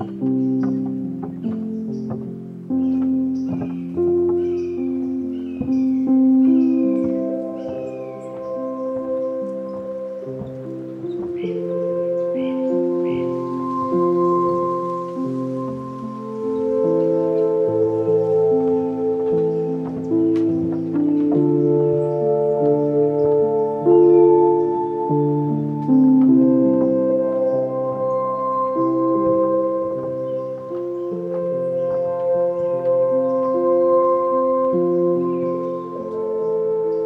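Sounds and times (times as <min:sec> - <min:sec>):
overlapping tonal calls in the Corkscrew Swamp bald cypress grove: 0:00.0 - 0:37.0.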